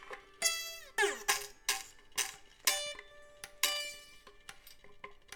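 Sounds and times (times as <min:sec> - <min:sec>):
lyre: 0:00.3 - 0:04.2.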